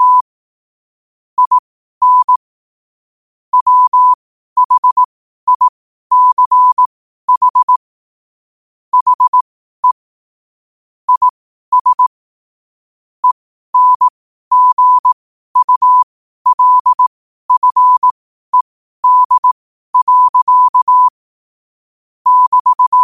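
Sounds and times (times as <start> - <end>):
morse code at 5 wpm: 0.0 - 0.2, 1.4 - 2.4, 3.5 - 7.8, 9.0 - 10.0, 11.1 - 12.1, 13.2 - 21.2, 22.2 - 23.0.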